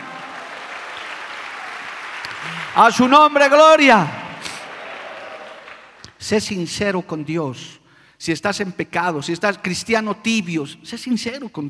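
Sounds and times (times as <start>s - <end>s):
audience applause: 0.0s - 6.0s
speech: 2.4s - 4.2s, 6.2s - 11.6s.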